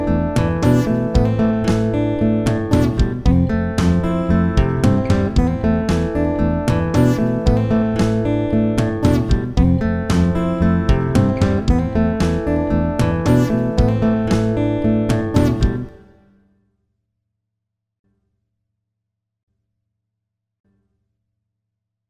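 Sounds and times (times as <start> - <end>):
simple guitar playing: 0.0 - 16.2.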